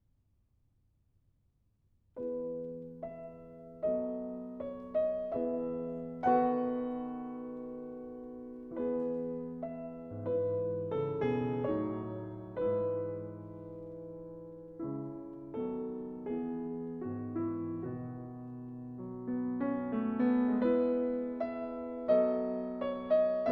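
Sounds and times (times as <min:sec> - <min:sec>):
piano trio in A minor: 0:02.2 - 0:23.5.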